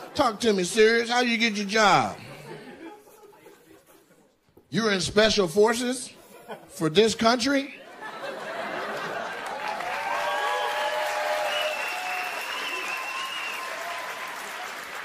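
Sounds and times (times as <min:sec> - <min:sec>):
laughter: 0:00.0 - 0:04.6, 0:06.2 - 0:09.9
speech: 0:00.2 - 0:02.3, 0:04.7 - 0:07.8
audience clapping: 0:08.8 - 0:15.0.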